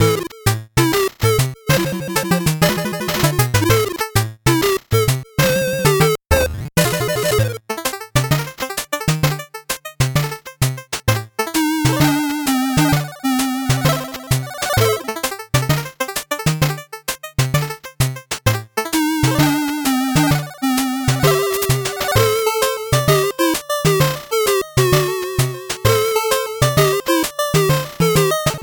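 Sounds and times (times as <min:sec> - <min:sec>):
8-bit background music: 0:00.0 - 0:28.6.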